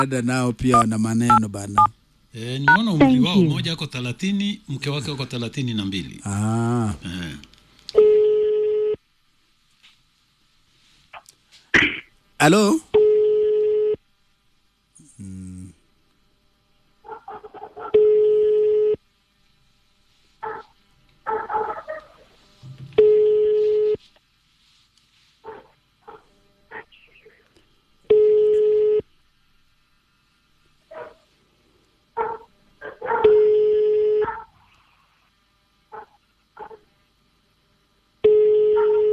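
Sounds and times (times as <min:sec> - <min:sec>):
speech: 0:00.0 - 0:07.5, 0:12.4 - 0:13.0
ringback tone of an unanswered phone call: 0:08.0 - 0:09.0, 0:13.0 - 0:14.0, 0:18.0 - 0:19.0, 0:23.0 - 0:24.1, 0:28.1 - 0:29.1, 0:33.2 - 0:34.3, 0:38.2 - 0:39.1.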